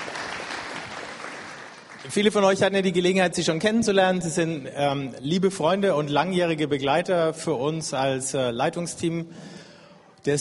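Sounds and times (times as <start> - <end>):
applause: 0.0 - 2.6
speech: 2.0 - 9.6.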